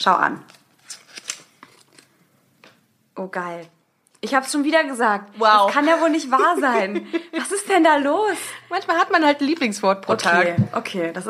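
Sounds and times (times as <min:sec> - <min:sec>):
speech: 0:00.0 - 0:00.6, 0:03.2 - 0:11.2
rummaging through a box of cards: 0:00.4 - 0:02.2
laughter: 0:05.6 - 0:08.3.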